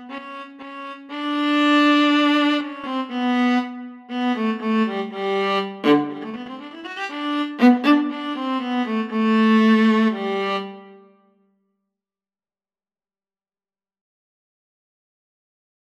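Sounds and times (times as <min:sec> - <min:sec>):
viola and cello duet: 0:00.0 - 0:11.0.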